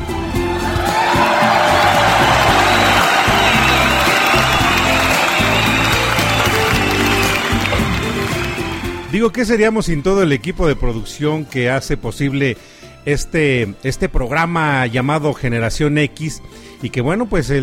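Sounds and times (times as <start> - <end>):
audience applause: 0.5 - 9.1
speech: 9.2 - 17.6.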